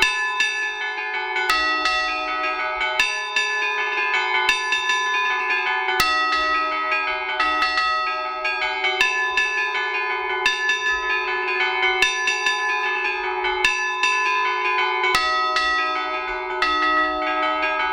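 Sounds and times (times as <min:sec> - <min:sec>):
church bells ringing in Glori, Imperia, Liguria: 0:00.0 - 0:17.9.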